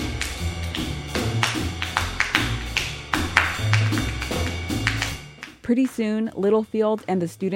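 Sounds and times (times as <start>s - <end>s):
students clapping to the beat: 0.0s - 6.0s
speech: 5.7s - 7.5s.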